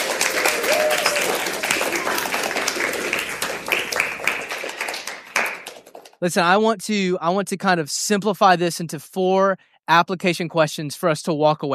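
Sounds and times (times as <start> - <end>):
audience clapping: 0.0 - 6.2
speech: 6.2 - 11.7.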